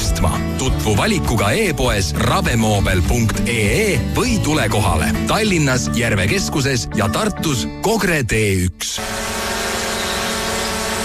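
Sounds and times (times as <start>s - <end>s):
speech: 0.6s - 9.2s
drone buzzing in flight: 9.0s - 11.0s.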